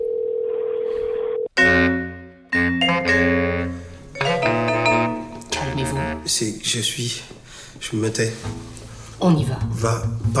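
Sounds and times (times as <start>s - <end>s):
telephone dial tone: 0.0s - 1.5s
electronic ringtone of chiming notes: 1.6s - 5.7s
speech: 6.2s - 10.3s.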